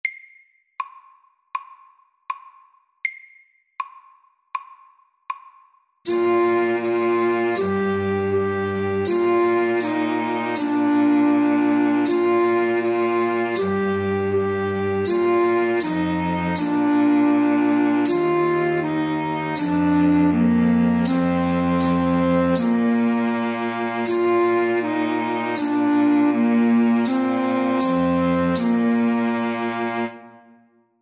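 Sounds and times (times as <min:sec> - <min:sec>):
slow folk tune at 80 BPM: 0:06.1 - 0:30.2.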